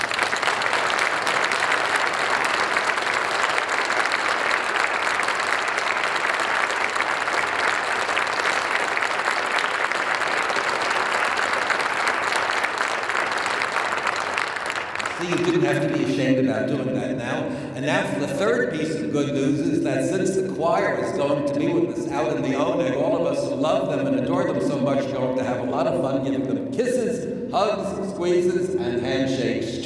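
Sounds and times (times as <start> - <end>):
audience applause for a choir: 0.0 - 16.1
speech: 16.4 - 29.8.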